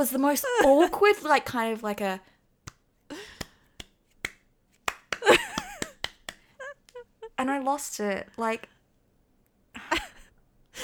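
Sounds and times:
speech: 0:00.0 - 0:02.3, 0:07.4 - 0:08.8
slow hesitant awkward clapping: 0:02.6 - 0:07.1
laughter: 0:05.2 - 0:07.3, 0:09.8 - 0:10.8.

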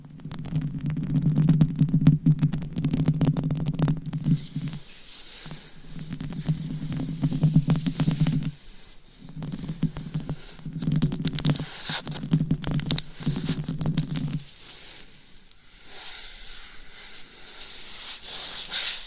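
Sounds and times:
microphone scratching: 0:00.0 - 0:14.8
faint hiss: 0:00.0 - 0:19.0.

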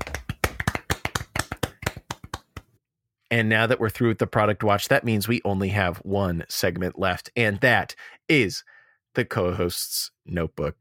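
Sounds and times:
sharp crisp hand claps: 0:00.0 - 0:02.8
speech: 0:03.3 - 0:10.7.

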